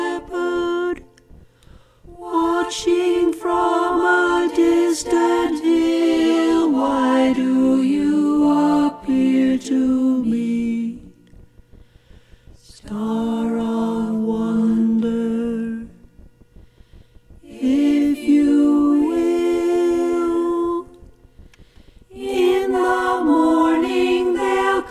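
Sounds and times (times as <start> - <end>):
choir singing a carol in harmony with mezzo voice: 0.0 - 1.1, 2.1 - 11.2, 12.7 - 15.9, 17.5 - 21.1, 22.1 - 24.8.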